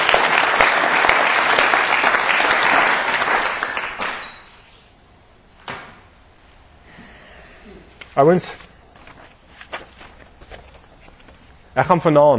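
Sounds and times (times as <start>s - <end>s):
audience applause: 0.0s - 4.2s
speech: 8.2s - 8.7s, 11.8s - 12.3s.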